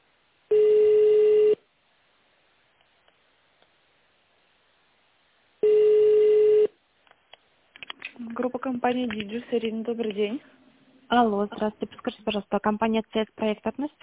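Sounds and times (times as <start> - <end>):
telephone ringback tone while a call connects: 0.5 - 1.6, 5.6 - 6.7
speech: 8.4 - 14.0.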